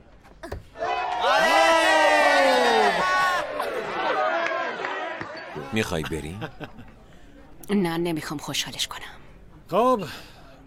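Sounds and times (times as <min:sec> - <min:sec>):
crowd cheering: 0:00.8 - 0:05.9
laughter: 0:05.4 - 0:07.0
speech: 0:05.8 - 0:07.0, 0:07.7 - 0:10.3.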